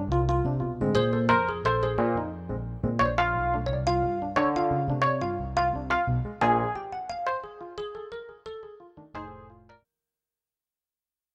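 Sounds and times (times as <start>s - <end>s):
electric piano: 0.0s - 9.8s.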